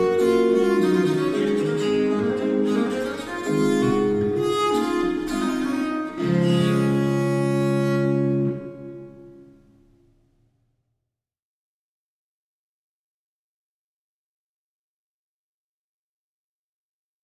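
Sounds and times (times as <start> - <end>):
sonata movement in D major on viola da gamba: 0.0 - 9.5.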